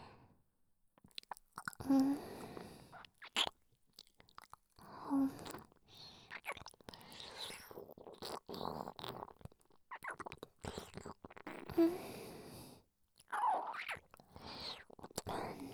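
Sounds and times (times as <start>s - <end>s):
chewing food with a strong vinegar aroma: 1.0s - 1.8s, 2.9s - 11.8s, 13.2s - 15.3s.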